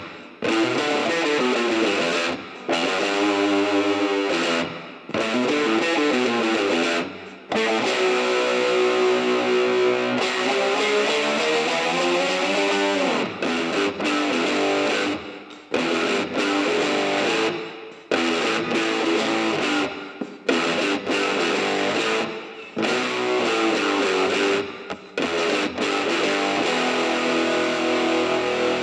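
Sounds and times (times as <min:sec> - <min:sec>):
main guitar: 0:00.0 - 0:28.8.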